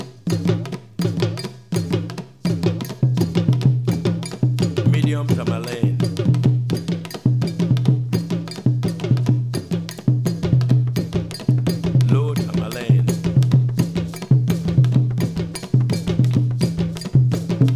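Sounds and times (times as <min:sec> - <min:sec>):
West African rhythm played on a drumset: 0:00.0 - 0:17.7.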